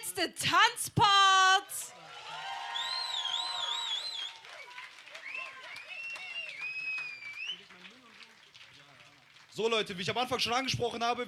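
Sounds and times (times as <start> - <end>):
speech: 0.2 - 1.9, 9.6 - 11.2
audience applause: 2.0 - 9.6.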